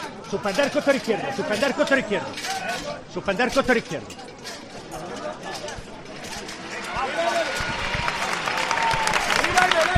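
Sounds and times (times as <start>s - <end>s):
speech: 0.3s - 4.3s
crowd applause in the Plaza de Santo Domingo: 6.8s - 9.9s.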